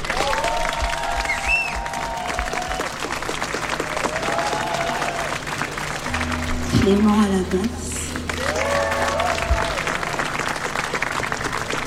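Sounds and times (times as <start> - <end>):
audience applause for the drummer: 0.0 - 11.8
whistles: 1.2 - 1.9
speech: 6.9 - 7.9.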